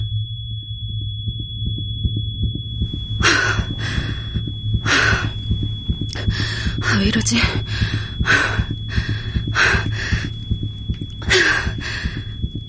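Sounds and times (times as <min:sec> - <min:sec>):
low pulsing heartbeat-like throb: 0:00.0 - 0:12.6
thin steady high-pitched tinnitus-like ringing tone: 0:00.0 - 0:12.6
speech: 0:06.9 - 0:10.1.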